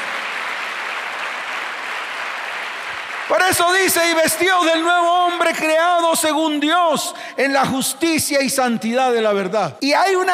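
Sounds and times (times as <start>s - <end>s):
audience applauding: 0.0s - 4.8s
speech: 3.3s - 10.3s.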